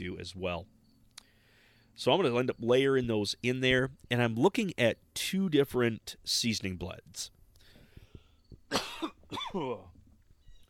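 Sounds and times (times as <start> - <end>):
speech: 0.0 - 0.8, 2.0 - 7.4, 8.7 - 10.0
person coughing: 8.7 - 9.9.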